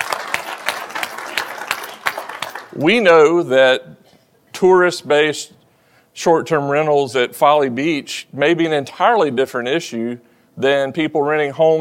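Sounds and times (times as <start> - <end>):
association audience clapping at a meeting on short-term rental regulation: 0.0 - 2.9
speech: 2.8 - 4.0, 4.6 - 5.6, 6.2 - 11.8.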